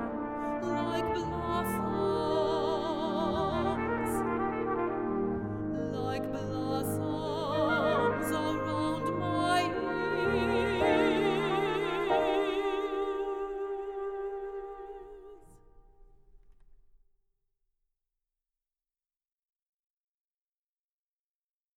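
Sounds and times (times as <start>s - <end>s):
solo trumpet: 0.0s - 16.8s.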